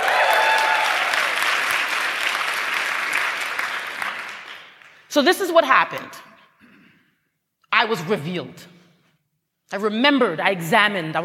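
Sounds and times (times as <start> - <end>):
audience at a live talk event applauding and cheering: 0.0 - 5.1
speech: 5.2 - 6.3, 7.8 - 8.8, 9.7 - 11.2.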